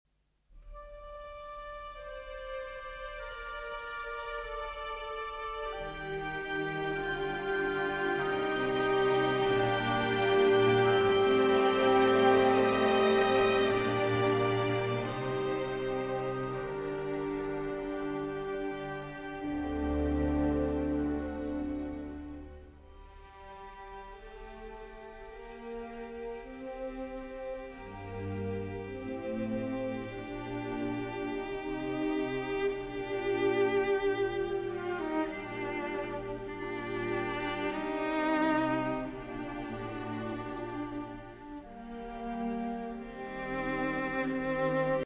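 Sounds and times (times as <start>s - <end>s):
cello concerto slow movement: 0.6s - 45.0s.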